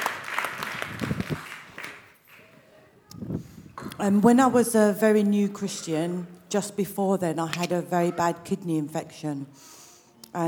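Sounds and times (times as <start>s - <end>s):
audience applause: 0.0s - 2.0s
speech: 4.0s - 10.4s.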